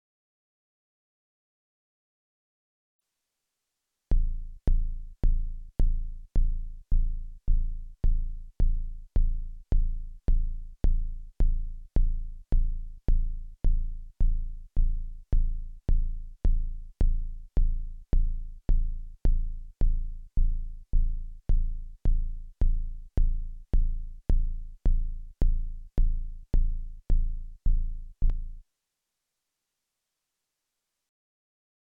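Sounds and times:
Volca synth kick drum, lowest, no drive: 4.1s - 28.6s.

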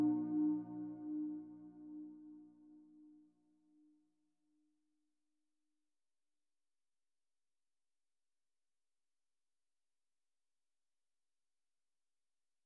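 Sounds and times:
wet ambient sound: 0.0s - 1.9s.

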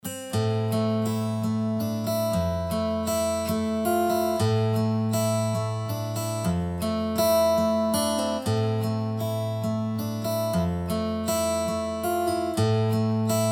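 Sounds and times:
Kontakt 7 sampled acoustic guitar: 0.0s - 13.5s.

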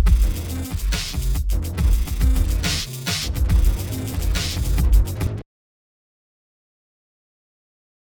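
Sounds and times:
dubstep music: 0.0s - 5.4s.

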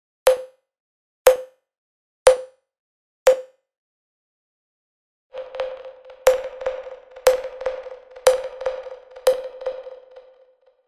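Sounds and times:
Cubase Pro 10.5 multi-tap delay effect: 5.3s - 10.6s.

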